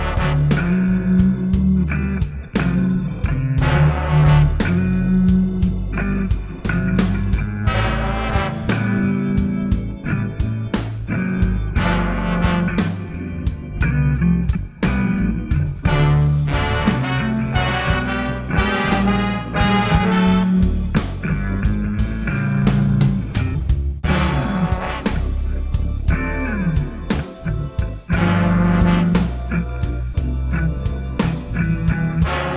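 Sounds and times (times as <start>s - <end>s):
slow blues in D: 0.0s - 32.5s.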